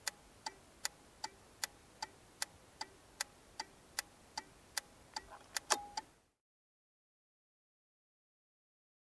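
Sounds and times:
motorcycle turn signal ticking: 0:00.0 - 0:06.1.

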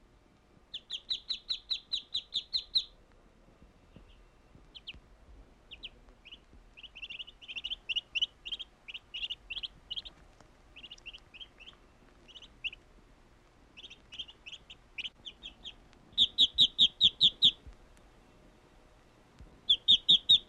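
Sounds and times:
bird chirping in bright high runs: 0:00.7 - 0:03.0, 0:03.9 - 0:05.0, 0:05.7 - 0:12.8, 0:13.8 - 0:17.7, 0:19.7 - 0:20.4.

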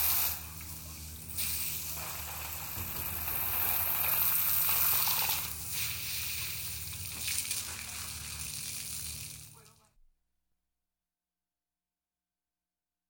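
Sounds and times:
car washing: 0:00.0 - 0:09.5.

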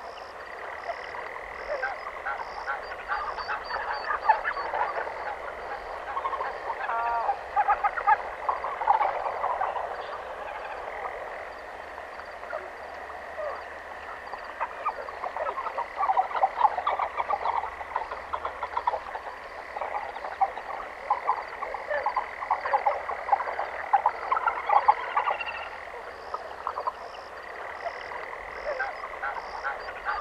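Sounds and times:
ducks on a pond: 0:00.0 - 0:30.1
forest ambience: 0:00.0 - 0:30.1.

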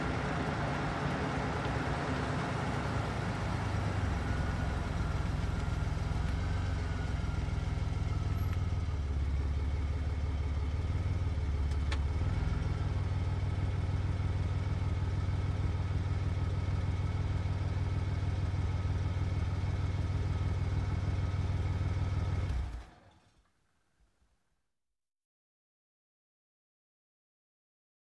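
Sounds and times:
car engine ignition: 0:00.0 - 0:23.2.

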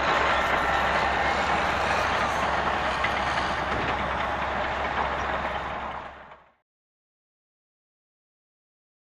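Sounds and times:
bulldozer unloading at a construction site: 0:00.0 - 0:06.6.

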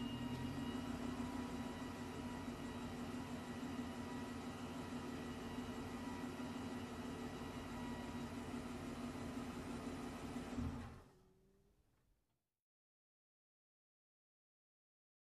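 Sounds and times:
car engine ignition: 0:00.0 - 0:11.7.

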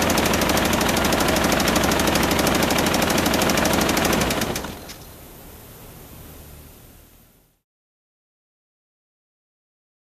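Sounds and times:
industrial machine motor running: 0:00.0 - 0:05.0.

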